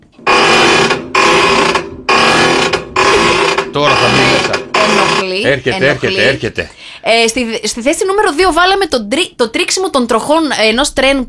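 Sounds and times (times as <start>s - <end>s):
rusty door hinge creaking: 0.2s - 5.4s
laughter: 3.9s - 6.8s
speech: 5.3s - 11.2s.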